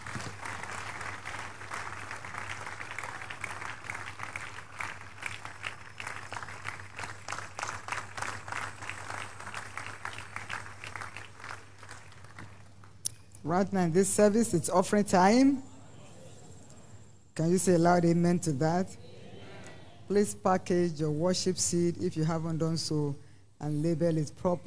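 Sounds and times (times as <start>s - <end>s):
audience applauding: 0.0s - 13.0s
speech: 13.5s - 15.7s, 17.4s - 19.0s, 20.1s - 24.6s.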